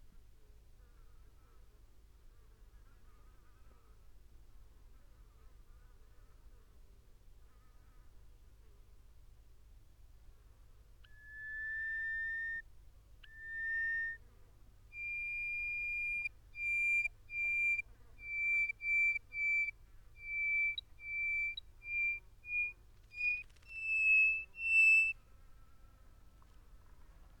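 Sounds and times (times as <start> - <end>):
bird whistling: 11.1 - 12.6, 13.2 - 14.2, 15.0 - 25.2.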